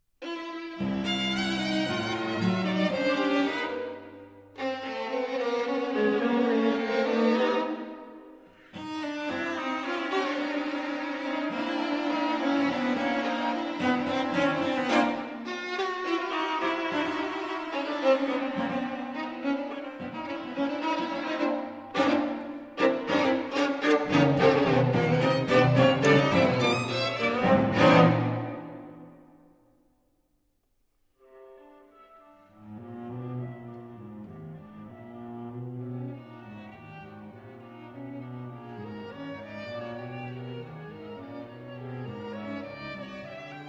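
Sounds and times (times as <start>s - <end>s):
string quartet allegro in C: 0.2s - 29.2s, 31.3s - 43.6s.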